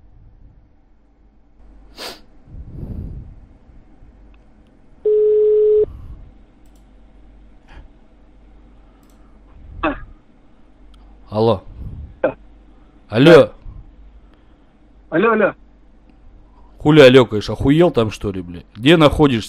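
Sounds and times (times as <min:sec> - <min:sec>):
ringback tone from an outgoing phone call: 0:05.1 - 0:05.9
speech: 0:11.4 - 0:11.7, 0:13.1 - 0:13.6, 0:15.2 - 0:15.6, 0:16.8 - 0:19.4.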